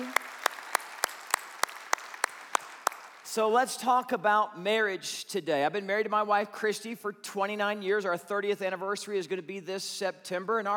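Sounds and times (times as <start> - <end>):
audience applause: 0.0 - 3.3
speech: 3.4 - 10.7.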